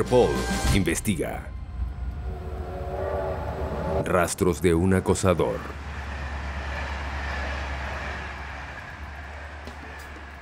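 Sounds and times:
speech: 0.0 - 1.6, 4.0 - 5.8
night train from Limoges to Paris running at speed through the Loire Valley: 1.6 - 10.4.

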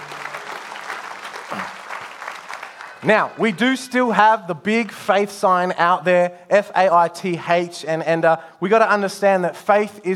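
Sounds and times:
congregation applauding the church band: 0.0 - 3.7
speech: 3.0 - 10.1.

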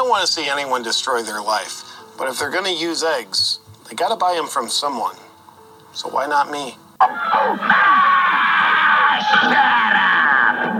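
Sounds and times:
speech: 0.0 - 5.2, 6.0 - 8.1
rooster squawking: 7.0 - 10.7.

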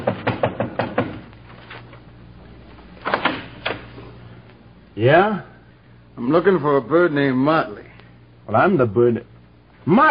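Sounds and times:
knocking on a door: 0.0 - 1.2
faint steady hum: 0.0 - 10.0
speech: 5.0 - 5.5, 6.2 - 7.9, 8.5 - 10.0.

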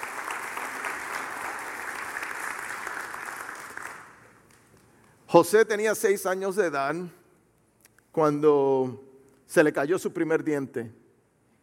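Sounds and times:
audience applause: 0.0 - 4.5
speech: 5.3 - 7.2, 8.2 - 11.0.

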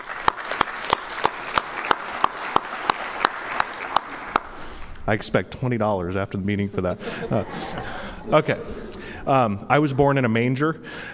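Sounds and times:
audience clapping: 0.0 - 4.9
speech: 5.1 - 11.1
laughter: 6.5 - 9.5.

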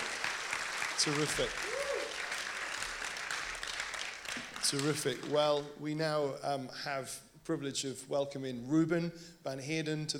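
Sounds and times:
audience applause: 0.0 - 5.6
speech: 1.0 - 1.8, 4.6 - 10.1.

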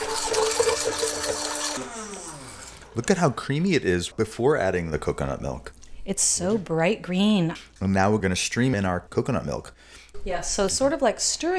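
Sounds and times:
immersion blender blending soup: 0.0 - 4.2
speech: 3.0 - 11.5.

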